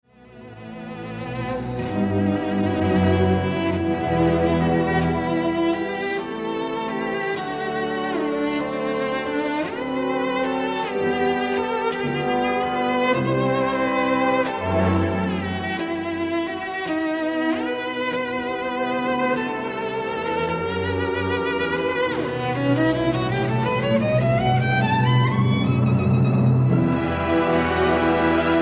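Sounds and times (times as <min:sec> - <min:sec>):
cello concerto: 0:00.0 - 0:28.5.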